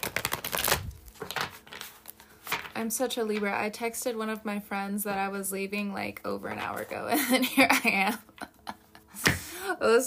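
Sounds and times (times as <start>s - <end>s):
Tarot Mucha tarot cards being shuffled: 0.0s - 2.8s
speech: 2.8s - 8.3s, 9.8s - 10.0s.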